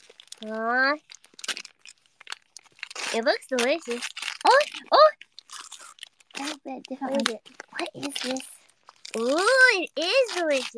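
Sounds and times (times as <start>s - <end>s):
snack package crinkling and tearing: 0.0s - 10.7s
speech: 0.4s - 1.2s, 3.1s - 5.1s, 6.4s - 8.5s, 9.2s - 10.7s.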